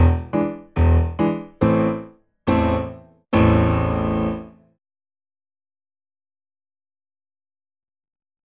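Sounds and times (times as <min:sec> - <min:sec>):
secondo part of piano four-hands practice pieces: 0:00.0 - 0:04.6.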